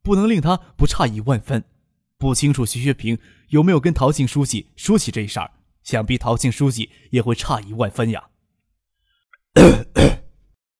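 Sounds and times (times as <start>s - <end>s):
speech: 0.0s - 8.3s, 9.6s - 10.1s
man coughing: 9.6s - 10.3s.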